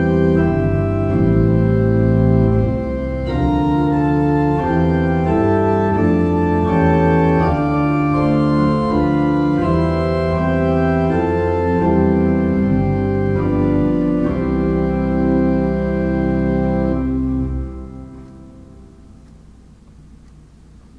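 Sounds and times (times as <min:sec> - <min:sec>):
loft pipe organ: 0:00.0 - 0:20.9.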